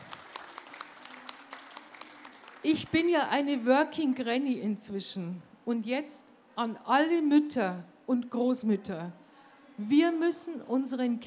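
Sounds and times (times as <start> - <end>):
audience applause as a tribute at an event: 0.0 - 3.0
speech: 2.6 - 9.2, 9.8 - 11.2.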